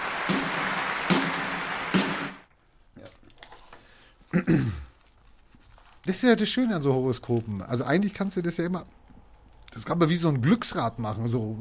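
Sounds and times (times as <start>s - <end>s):
applause: 0.0s - 2.5s
speech: 4.4s - 4.8s, 6.1s - 9.0s, 9.8s - 11.5s.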